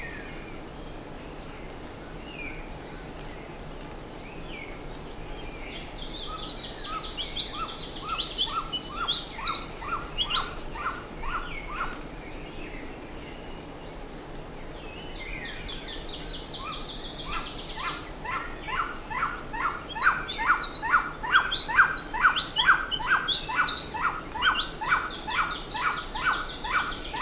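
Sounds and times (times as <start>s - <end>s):
bird chip calls: 6.2s - 12.0s, 15.7s - 27.2s.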